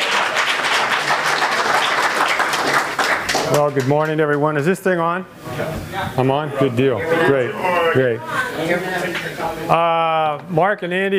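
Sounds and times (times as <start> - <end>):
church audience applause welcoming a Bible teacher: 0.0 - 4.4
speech: 3.5 - 11.1.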